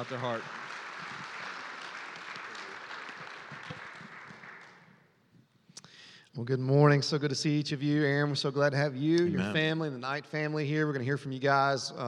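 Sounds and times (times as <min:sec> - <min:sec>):
speech: 0:00.0 - 0:00.6, 0:06.4 - 0:12.0
audience applause: 0:00.0 - 0:05.1.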